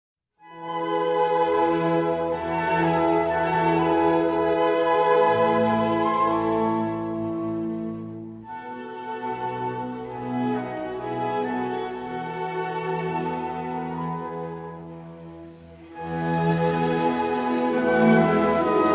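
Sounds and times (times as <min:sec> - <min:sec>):
violin and orchestra adagio in E major: 0:00.4 - 0:18.9.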